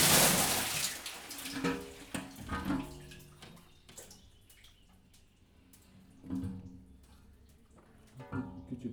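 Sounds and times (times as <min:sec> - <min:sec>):
water poured back into a covered wheel well: 0:00.0 - 0:02.2
water drawn from a covered wheel well: 0:00.0 - 0:02.9.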